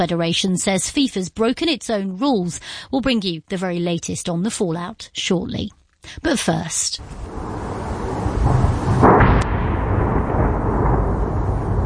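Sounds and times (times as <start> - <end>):
speech: 0.0 - 8.6
Russian missile and drone strike exploding over Kyiv: 7.0 - 11.8
low rumbling background: 7.0 - 11.8.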